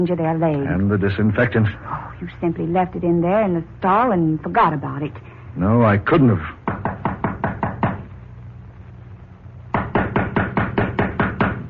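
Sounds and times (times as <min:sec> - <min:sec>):
speech: 0:00.0 - 0:06.6
knocking on a door: 0:06.6 - 0:08.1, 0:09.7 - 0:11.6.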